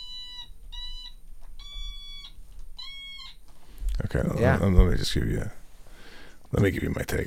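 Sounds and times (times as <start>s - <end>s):
wah-wah voice-like tones from a musical toy: 0.0s - 3.4s
speech: 4.0s - 5.6s, 6.5s - 7.2s.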